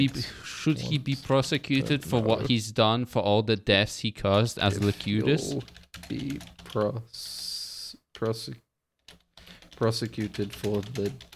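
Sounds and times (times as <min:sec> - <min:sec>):
speech: 0:00.0 - 0:07.4, 0:08.2 - 0:08.6, 0:09.8 - 0:11.3
typing on a computer keyboard: 0:04.6 - 0:07.5, 0:08.2 - 0:11.3.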